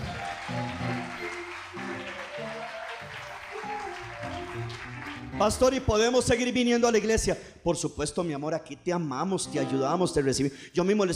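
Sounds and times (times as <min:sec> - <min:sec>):
audience applause: 0:00.0 - 0:05.8
speech: 0:05.4 - 0:11.1.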